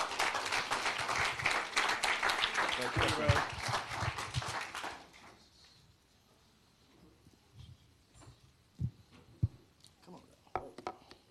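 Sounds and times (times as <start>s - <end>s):
audience applause at a church service: 0.0s - 5.2s
speech: 2.8s - 3.6s.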